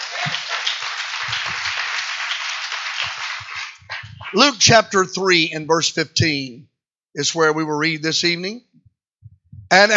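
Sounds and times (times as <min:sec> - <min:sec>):
audience clapping hands: 0:00.0 - 0:04.6
speech: 0:04.3 - 0:08.7, 0:09.7 - 0:09.9.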